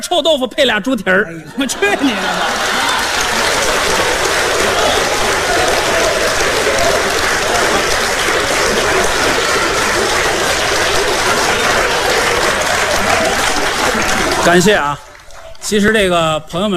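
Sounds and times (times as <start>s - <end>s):
speech: 0.0s - 2.9s, 14.4s - 16.7s
laughter: 1.4s - 15.6s
thunderous audience applause: 1.8s - 16.2s.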